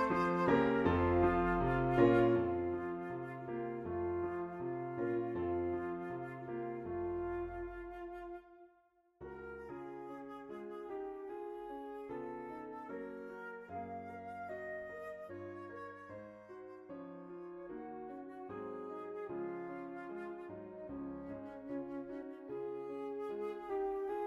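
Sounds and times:
flute: 0.0 - 24.2
piano: 0.0 - 24.2.

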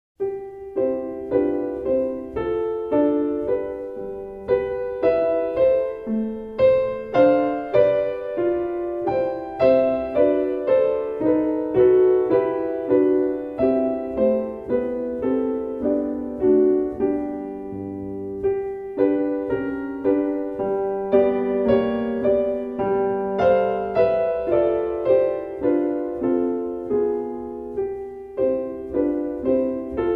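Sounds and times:
prelude: 0.2 - 30.1.

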